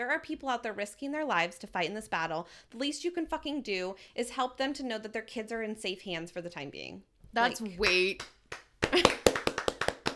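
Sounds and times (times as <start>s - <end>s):
speech: 0.0s - 9.2s
soft polite golf clap: 7.8s - 10.1s.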